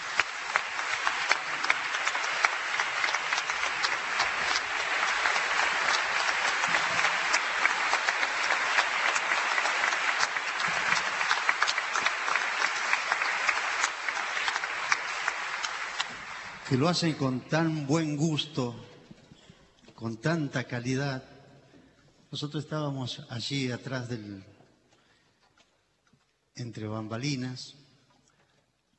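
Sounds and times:
audience applause: 0.0s - 18.2s
speech: 16.7s - 18.9s, 20.0s - 21.3s, 22.3s - 24.5s, 26.6s - 27.8s.

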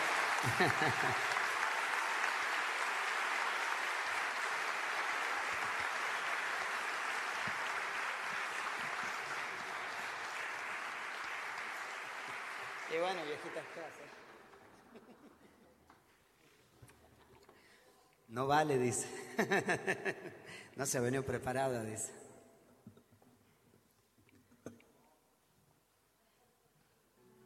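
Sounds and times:
laughter: 0.0s - 1.6s, 8.4s - 10.6s, 14.5s - 15.9s, 19.1s - 20.6s
audience applause: 0.0s - 14.8s
speech: 0.4s - 1.4s, 13.0s - 14.3s, 18.3s - 22.2s.

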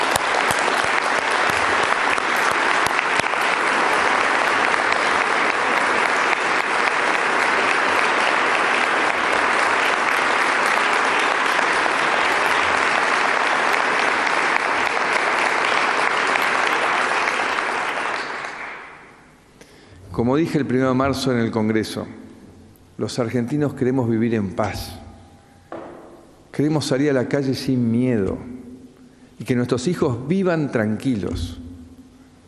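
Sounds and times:
audience applause: 0.0s - 19.1s
speech: 20.2s - 22.2s, 23.0s - 25.0s, 26.6s - 28.6s, 29.4s - 31.6s.

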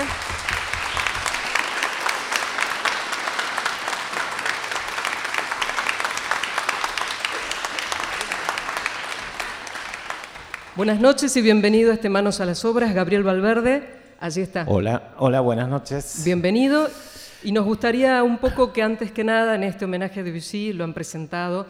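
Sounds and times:
audience applause: 0.0s - 11.0s
speech: 10.8s - 21.6s.

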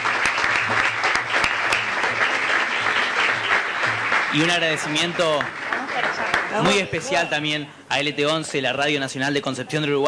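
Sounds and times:
audience applause: 0.0s - 7.2s
speech: 4.3s - 10.0s.

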